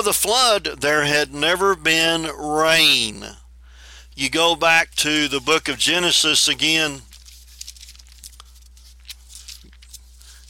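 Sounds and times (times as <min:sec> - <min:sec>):
speech: 0:00.0 - 0:03.4, 0:04.2 - 0:07.1
pages of a new Bible being turned: 0:06.6 - 0:10.4.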